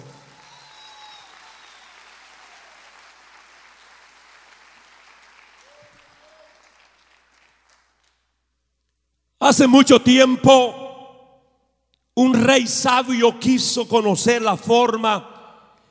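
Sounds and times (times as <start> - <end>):
audience applause: 0.0 - 8.2
speech: 9.5 - 10.8, 12.2 - 15.3.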